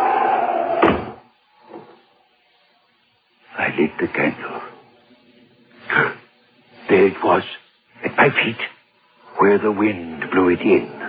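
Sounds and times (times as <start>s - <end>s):
door being shut: 0.8s - 2.0s
speech: 3.8s - 4.7s, 7.1s - 7.6s, 8.2s - 8.7s, 9.4s - 11.0s.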